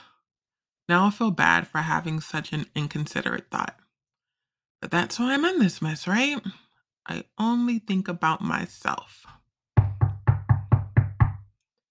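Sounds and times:
speech: 0:00.9 - 0:03.8, 0:04.8 - 0:09.4
knocking on a door: 0:09.8 - 0:11.5.

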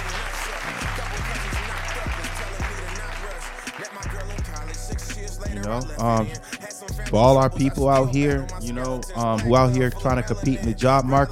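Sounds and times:
crowd applauding: 0:00.0 - 0:04.8
music with steady thumping beat: 0:00.0 - 0:11.2
speech: 0:05.7 - 0:06.5, 0:07.1 - 0:11.2.

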